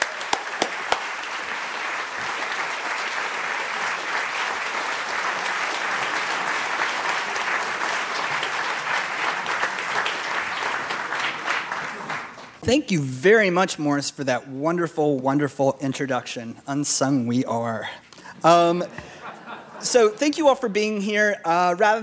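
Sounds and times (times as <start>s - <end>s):
audience applause welcoming a speaker at the Free Library in Philadelphia: 0.0s - 12.6s
speech: 12.7s - 19.1s, 19.8s - 22.0s
laughter: 18.3s - 20.4s.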